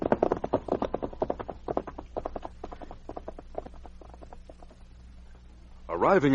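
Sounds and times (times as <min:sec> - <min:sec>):
several horses' hooves clip-clopping: 0:00.0 - 0:04.8.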